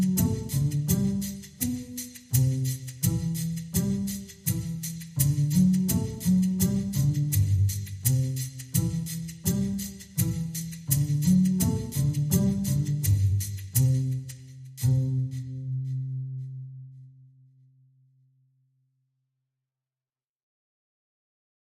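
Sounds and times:
percussion: 0:00.0 - 0:17.1
bass: 0:00.0 - 0:18.9.

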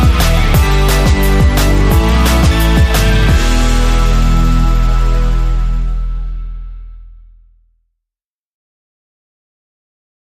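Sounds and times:
short piano fantasy: 0:00.0 - 0:06.6.

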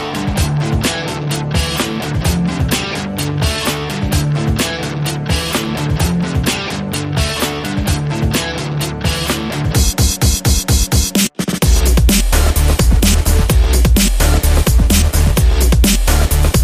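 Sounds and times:
rhythm guitar: 0:00.0 - 0:16.6.

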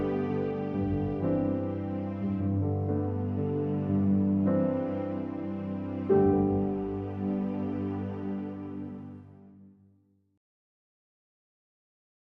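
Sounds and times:
strings: 0:00.0 - 0:09.6.

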